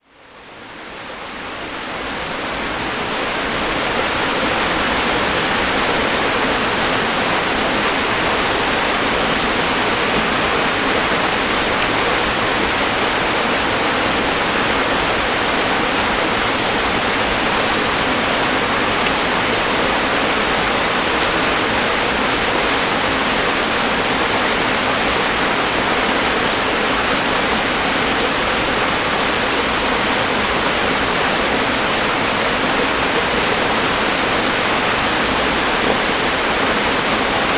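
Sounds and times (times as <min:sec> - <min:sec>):
running water outdoors: 0:00.2 - 0:37.5.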